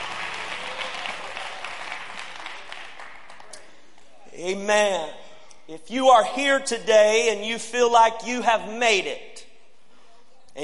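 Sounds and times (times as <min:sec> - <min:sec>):
audience applause: 0:00.0 - 0:03.6
speech: 0:04.4 - 0:09.3.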